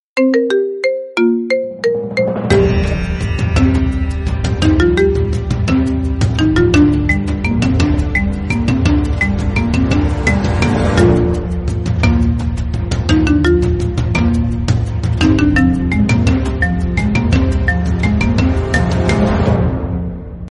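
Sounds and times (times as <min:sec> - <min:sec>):
marimba: 0:00.2 - 0:19.6.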